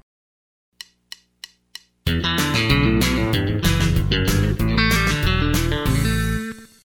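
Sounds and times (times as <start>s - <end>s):
country rock music: 2.1s - 6.7s.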